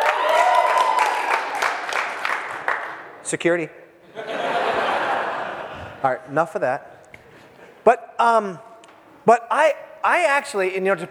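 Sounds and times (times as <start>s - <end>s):
cheering and applause: 0.0s - 2.9s
speech: 3.3s - 3.8s, 6.0s - 7.0s, 7.8s - 11.0s
laughter: 4.1s - 6.1s.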